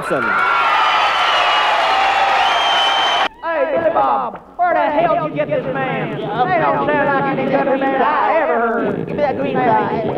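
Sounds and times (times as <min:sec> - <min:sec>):
audience cheering and clapping to welcome a singer: 0:00.0 - 0:03.4
speech: 0:00.1 - 0:00.4, 0:03.7 - 0:10.1.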